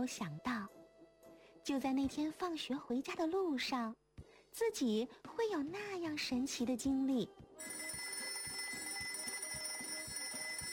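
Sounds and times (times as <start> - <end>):
speech: 0.0 - 0.6, 1.6 - 7.9
alarm clock ringing: 7.6 - 10.7.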